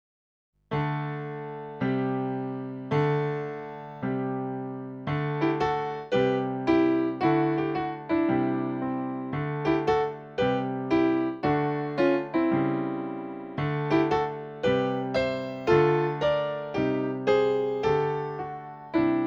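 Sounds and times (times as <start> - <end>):
piano: 0.7 - 19.2.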